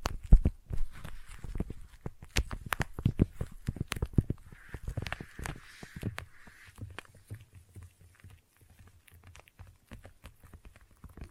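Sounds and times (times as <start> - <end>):
sticky tapping: 0.0 - 11.3
soft rustling hiss: 4.2 - 7.2.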